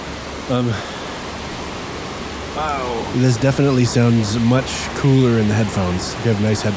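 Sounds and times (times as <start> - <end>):
heavy rain falling outside window: 0.0 - 6.7
speech: 0.5 - 1.0, 2.6 - 6.7
person's voice: 2.6 - 6.7.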